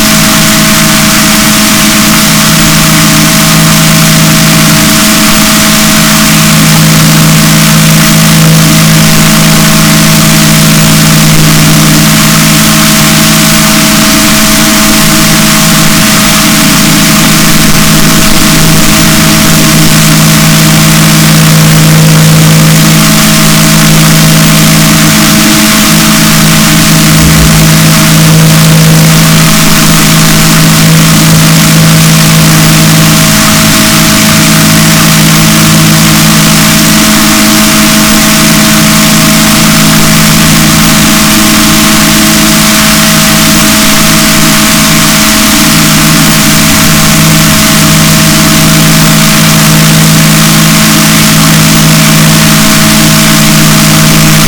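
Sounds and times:
boat: 0.0s - 54.4s.

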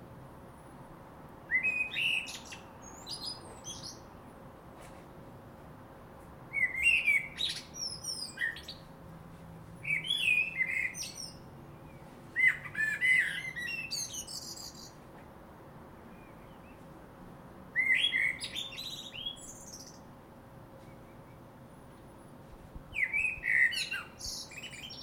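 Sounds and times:
common blackbird singing: 1.5s - 4.1s, 6.5s - 8.9s, 9.8s - 15.0s, 17.8s - 20.1s, 22.9s - 25.0s.

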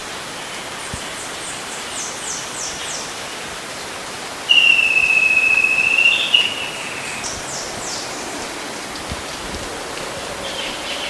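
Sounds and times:
constant hiss: 0.0s - 11.0s
bird sustained pure whistle: 4.5s - 7.2s.

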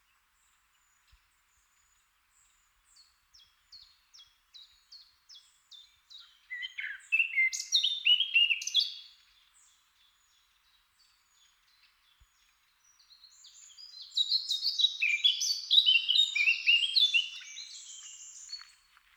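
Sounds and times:
Eurasian blackcap song: 4.6s - 10.4s, 11.0s - 18.8s.

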